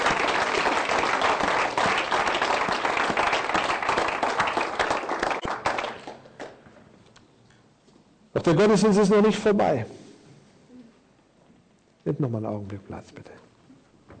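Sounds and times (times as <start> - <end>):
applause: 0.0 - 6.7
speech: 8.4 - 10.0, 12.2 - 13.5.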